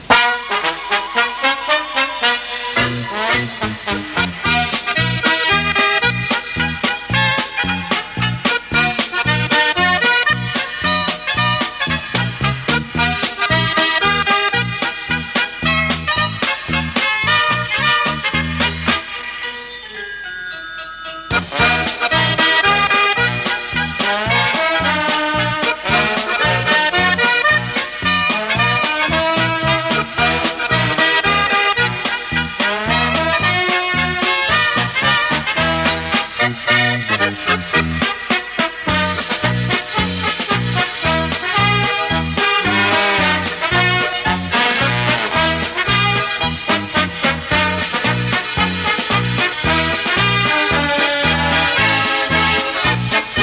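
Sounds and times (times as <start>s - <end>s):
polka music: 0.0s - 53.4s.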